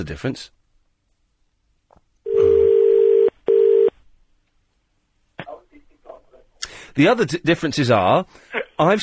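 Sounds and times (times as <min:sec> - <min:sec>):
speech: 0:00.0 - 0:00.6, 0:07.0 - 0:09.0
telephone dial tone after caller hung up: 0:02.3 - 0:04.0.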